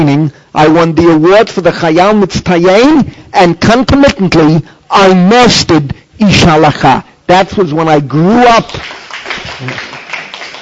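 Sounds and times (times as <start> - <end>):
speech: 0.0 - 9.0, 9.6 - 9.9
audience applause: 8.8 - 10.6.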